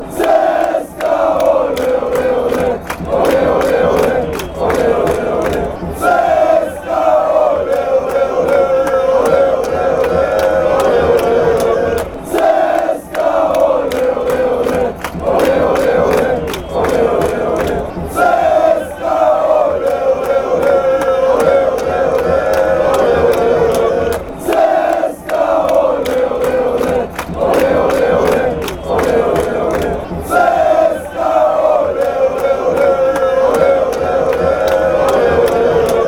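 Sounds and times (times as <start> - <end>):
football fans chanting: 0.0 - 36.0.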